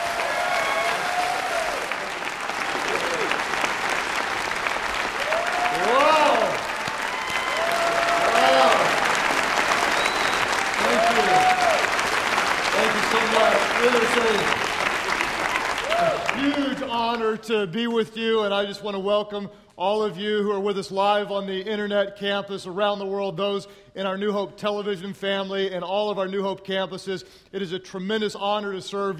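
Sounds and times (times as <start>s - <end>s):
audience applause welcoming a guest speaker at a New Hope gathering: 0.0s - 17.1s
voices and cheers rising above applause: 0.0s - 17.2s
speech: 17.5s - 29.1s.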